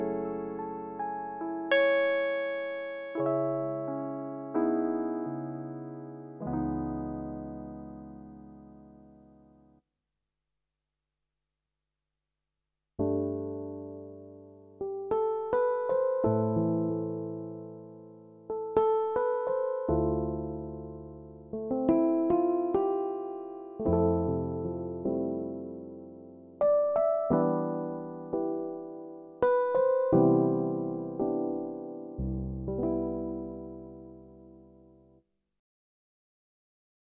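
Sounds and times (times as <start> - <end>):
electric piano: 0.0 - 9.8, 13.0 - 35.2.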